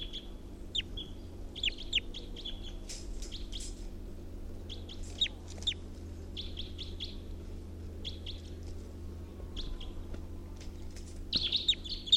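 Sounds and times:
recorded bird call: 0.0s - 3.8s, 4.7s - 7.3s, 8.0s - 8.6s, 11.3s - 12.1s
steady low hum: 0.0s - 12.1s.

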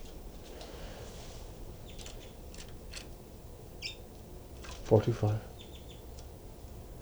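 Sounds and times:
birds chittering to each other: 1.7s - 6.3s
low voice murmuring: 4.9s - 5.5s.

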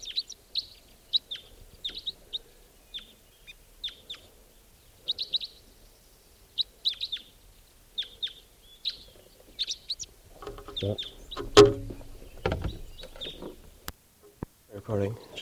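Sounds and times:
type 4 red crossbill calling from a tree: 0.0s - 14.5s
rustling: 9.1s - 14.5s
low thumping noises: 10.4s - 13.8s
speech: 14.9s - 15.3s.

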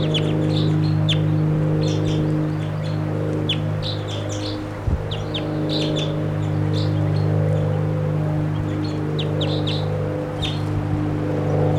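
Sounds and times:
wild bird chirping and calling in a tree: 0.0s - 7.9s, 8.5s - 10.8s
steady low engine-like hum: 0.0s - 11.7s.

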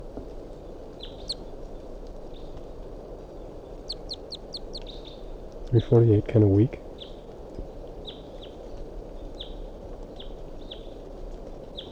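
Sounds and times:
wild bird calling with short high chirps: 1.0s - 1.4s, 3.8s - 5.2s
speech: 5.7s - 6.8s.

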